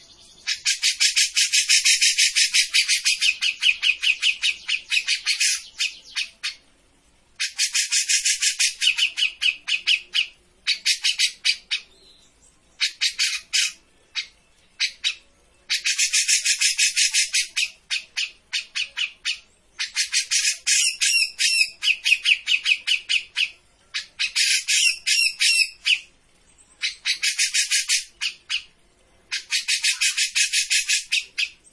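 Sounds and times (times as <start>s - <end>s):
grey-cheeked bulbul chattering song: 0.0s - 6.7s, 7.4s - 31.7s.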